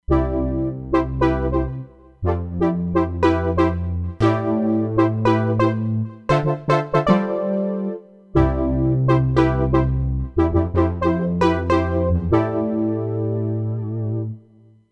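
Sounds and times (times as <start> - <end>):
Silky JP synthesizer patch on a Roland Fantom XR: 0.1 - 14.7.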